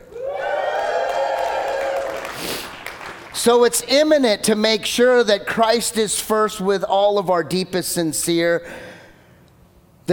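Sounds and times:
audience cheering and shouting: 0.0s - 2.3s
speech: 3.4s - 8.9s.

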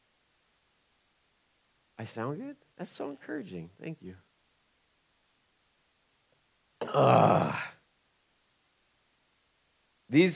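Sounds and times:
speech: 2.0s - 4.3s, 7.0s - 7.7s, 10.1s - 10.3s
throaty growl: 6.8s - 7.8s.

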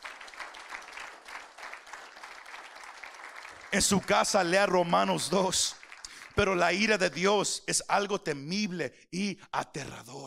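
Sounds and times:
audience applauding: 0.0s - 7.3s
speech: 3.7s - 5.8s, 6.4s - 10.2s.

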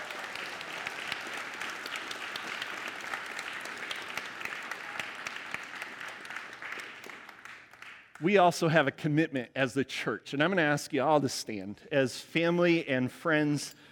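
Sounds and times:
crowd round of applause: 0.0s - 8.0s
speech: 8.2s - 13.9s.

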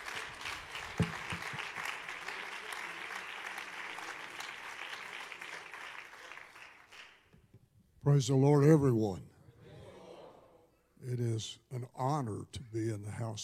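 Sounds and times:
audience clapping hands: 0.0s - 7.3s
speech: 8.1s - 9.3s, 11.1s - 13.4s.

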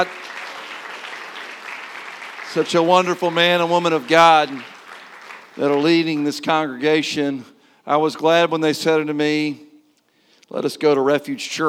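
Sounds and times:
audience applause: 0.0s - 6.7s
speech: 2.5s - 4.7s, 5.6s - 9.7s, 10.5s - 11.6s.

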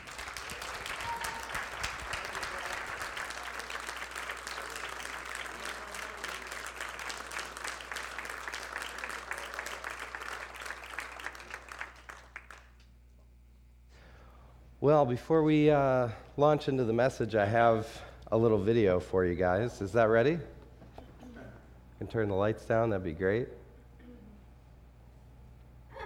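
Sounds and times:
crowd applauding: 0.0s - 12.8s
speech: 14.9s - 20.6s, 22.1s - 23.6s.

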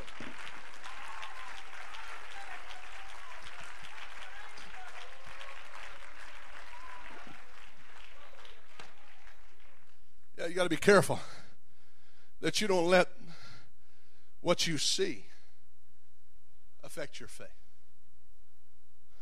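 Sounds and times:
audience clapping hands in praise: 0.0s - 10.1s
speech: 10.5s - 11.4s, 12.4s - 13.2s, 14.4s - 15.3s, 17.0s - 17.6s.

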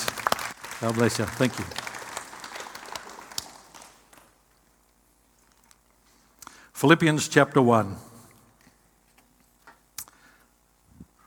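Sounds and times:
audience clapping from across a large room: 0.0s - 4.4s
speech: 0.8s - 1.8s, 6.8s - 8.1s.

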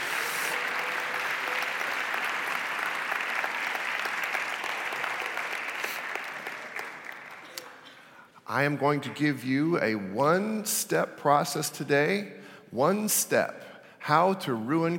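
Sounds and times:
crowd applauding: 0.0s - 7.9s
speech: 8.5s - 14.9s.

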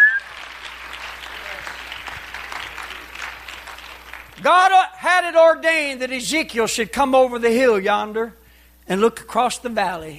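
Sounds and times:
audience clapping hands: 0.0s - 4.8s
speech: 4.4s - 10.1s.

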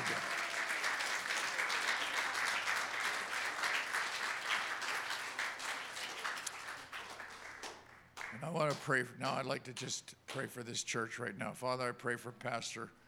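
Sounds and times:
church crowd clapping: 0.0s - 9.0s
speech: 8.4s - 13.0s.

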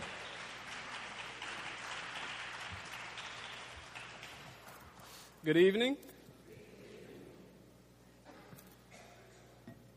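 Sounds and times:
faint audience clapping welcoming a speaker at a talk on the Bible: 0.0s - 5.8s
speech: 5.4s - 6.1s.

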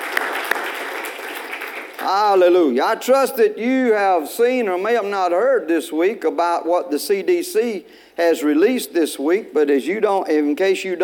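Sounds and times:
audience applauding: 0.0s - 2.2s
speech: 2.0s - 11.0s.

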